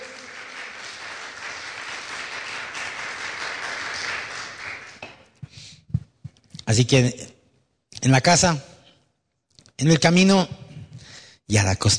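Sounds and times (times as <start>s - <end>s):
crowd applause: 0.0s - 5.2s
speech: 6.7s - 7.3s, 8.0s - 8.7s, 9.8s - 10.6s, 11.5s - 11.9s.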